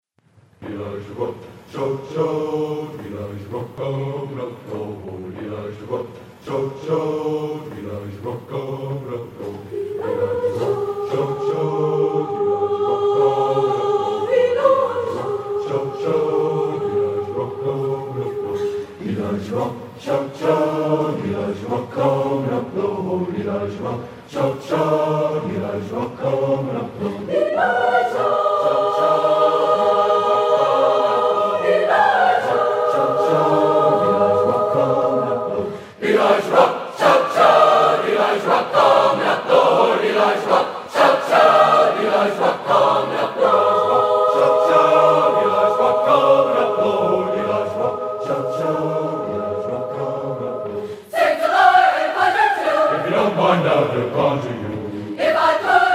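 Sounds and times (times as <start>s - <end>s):
gospel spiritual choir singing: 0.6s - 55.9s.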